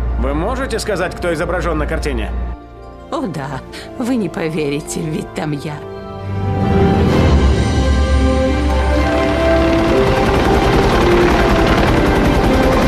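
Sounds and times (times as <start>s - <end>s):
speech: 0.2s - 6.4s
helicopter flying overhead: 7.2s - 12.8s.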